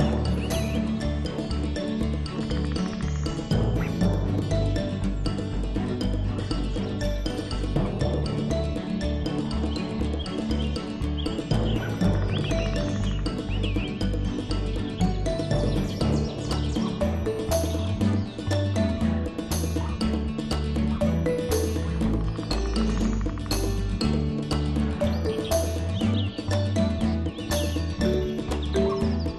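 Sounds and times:
woods ambience: 0:00.0 - 0:29.3.

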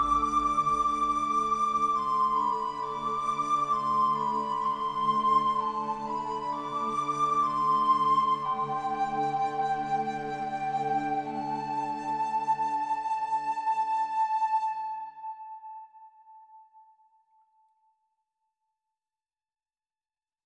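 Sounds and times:
ambient music: 0:00.0 - 0:16.3.

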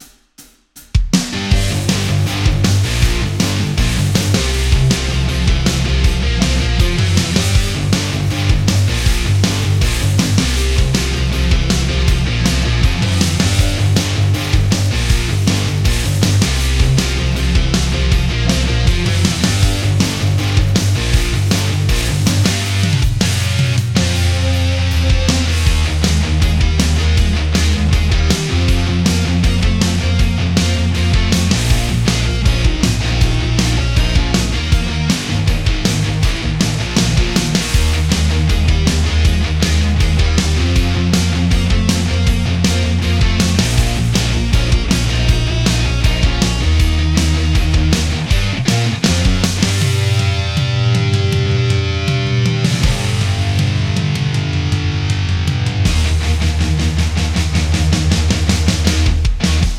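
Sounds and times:
rock music: 0:00.9 - 0:59.7.

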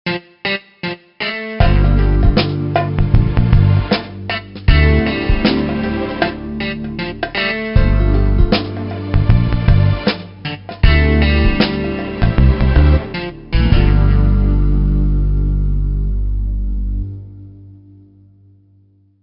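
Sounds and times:
suspenseful synth guitar: 0:01.2 - 0:18.7.

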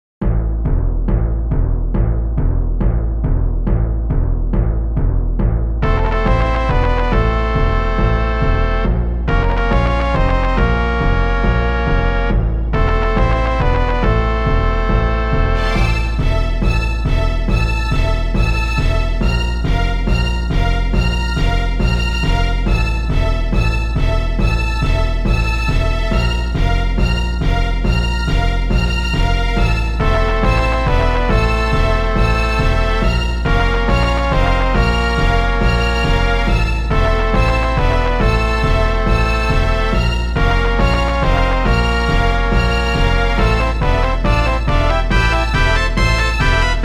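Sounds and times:
quest battle music: 0:00.3 - 0:46.8.

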